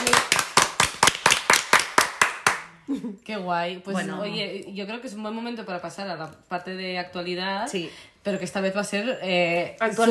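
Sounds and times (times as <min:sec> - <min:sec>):
single person clapping: 0:00.0 - 0:02.8
speech: 0:02.9 - 0:10.0.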